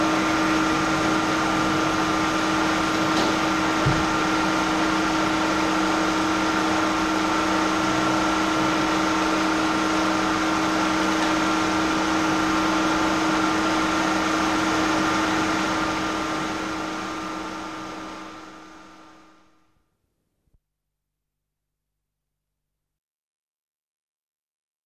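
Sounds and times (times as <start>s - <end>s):
factory workshop noise: 0.0s - 19.0s.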